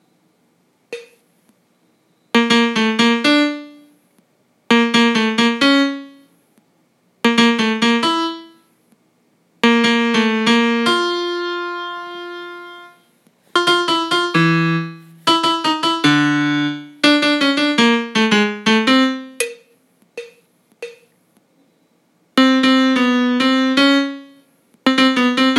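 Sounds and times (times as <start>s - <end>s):
melody: 2.4s - 3.9s, 4.7s - 6.2s, 7.3s - 8.6s, 9.6s - 13.0s, 13.6s - 19.6s, 22.4s - 25.5s.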